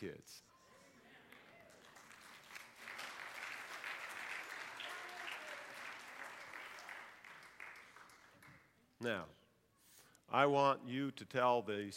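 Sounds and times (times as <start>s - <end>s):
speech: 0.0s - 0.5s, 9.0s - 9.4s, 10.3s - 11.9s
audience clapping: 1.2s - 8.8s.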